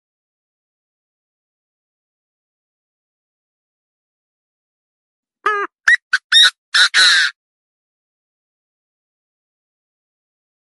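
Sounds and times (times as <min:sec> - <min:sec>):
partridge calling: 0:05.5 - 0:07.3.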